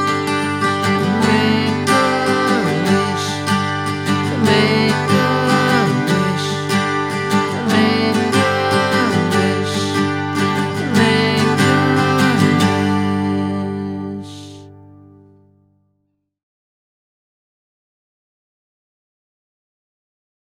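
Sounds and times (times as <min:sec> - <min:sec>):
birthday song: 0:00.0 - 0:15.2.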